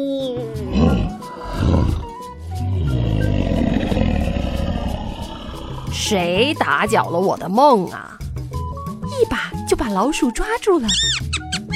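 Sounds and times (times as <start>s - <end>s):
lion roar: 0.6s - 6.0s
speech: 6.1s - 8.2s, 9.2s - 11.3s.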